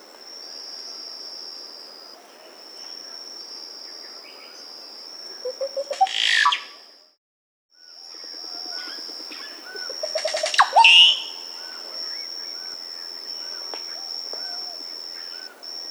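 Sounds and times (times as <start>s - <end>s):
Dusky-Green Oropendola Psarocolius calling in South America: 5.3s - 6.8s, 8.4s - 15.8s.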